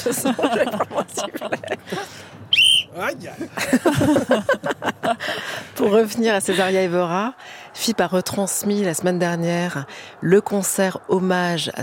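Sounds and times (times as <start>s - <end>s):
laughter: 0.0s - 2.2s, 3.1s - 6.9s
speech: 0.0s - 2.2s, 3.0s - 11.8s
whistle being blown: 2.5s - 3.0s.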